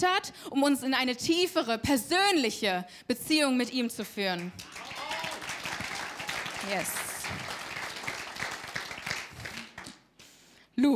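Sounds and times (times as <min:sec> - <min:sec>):
speech: 0:00.0 - 0:05.0, 0:06.6 - 0:07.4
audience applause: 0:04.5 - 0:10.0.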